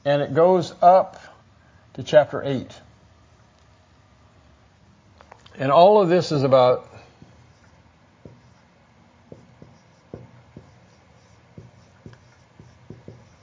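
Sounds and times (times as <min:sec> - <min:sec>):
speech: 0:00.0 - 0:01.3, 0:02.0 - 0:02.9, 0:05.6 - 0:06.9
hiss: 0:00.0 - 0:13.4
pen scratching on paper: 0:07.3 - 0:08.7, 0:09.3 - 0:13.4.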